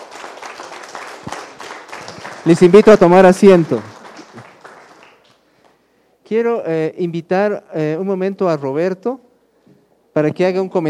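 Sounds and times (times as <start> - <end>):
audience applause: 0.0 - 5.4
speech: 2.4 - 3.9, 6.3 - 9.3, 10.2 - 10.8.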